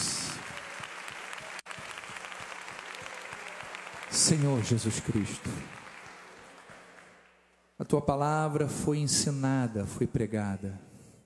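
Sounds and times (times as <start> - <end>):
audience applauding: 0.0 - 7.6
speech: 4.2 - 5.8, 7.9 - 10.9.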